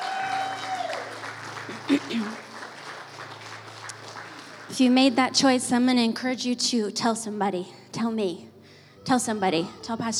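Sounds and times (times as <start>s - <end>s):
audience applause: 0.0s - 5.1s
speech: 1.9s - 2.5s, 4.8s - 10.1s.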